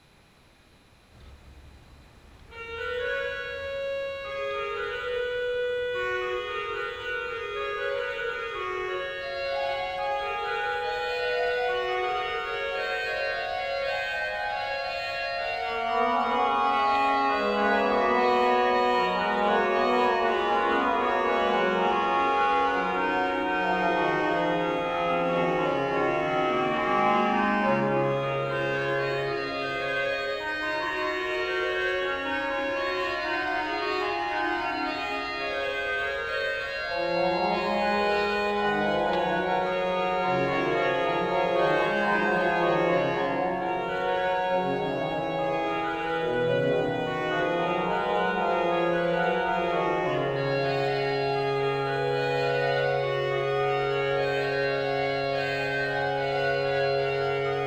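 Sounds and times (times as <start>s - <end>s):
trio playing: 2.4s - 57.6s.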